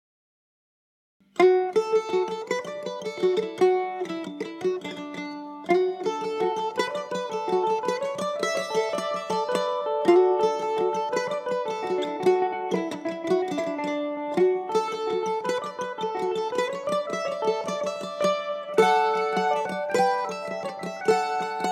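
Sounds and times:
mandolin duet: 0:01.2 - 0:21.7.

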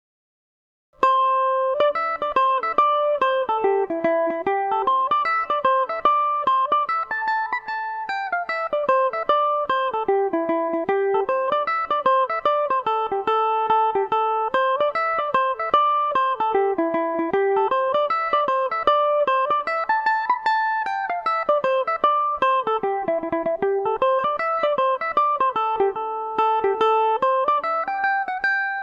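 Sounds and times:
Irish mandolin in A minor: 0:01.0 - 0:28.8.

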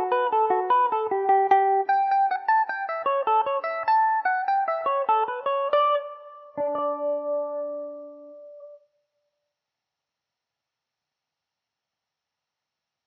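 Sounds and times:
Irish mandolin playing in D major: 0:00.0 - 0:08.6.

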